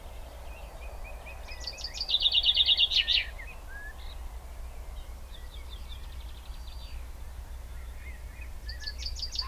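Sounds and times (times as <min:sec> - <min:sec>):
common chaffinch Fringilla coelebs singing: 0:00.0 - 0:09.4.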